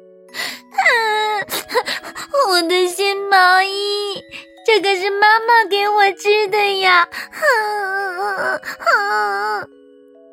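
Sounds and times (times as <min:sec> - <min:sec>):
person performing crying character Alfie: 0:00.4 - 0:04.6, 0:06.8 - 0:09.7
speech: 0:03.6 - 0:09.7.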